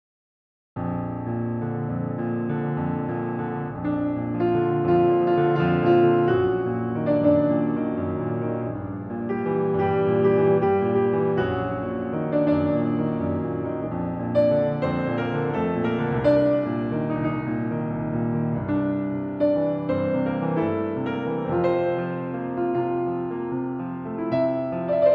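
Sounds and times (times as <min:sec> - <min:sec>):
solo piano: 0:00.8 - 0:25.1.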